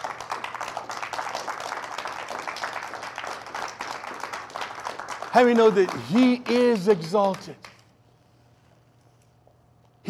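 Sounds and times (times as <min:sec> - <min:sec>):
large crowd clapping: 0:00.0 - 0:08.0
speech: 0:05.3 - 0:07.7.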